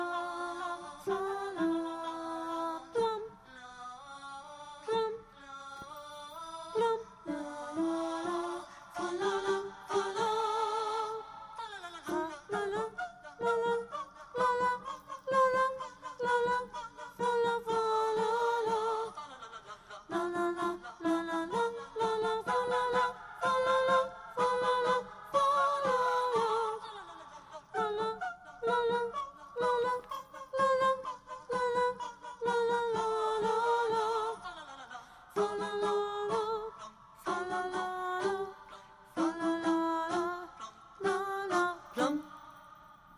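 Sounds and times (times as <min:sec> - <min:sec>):
soprano singing dance music: 0:00.0 - 0:43.1.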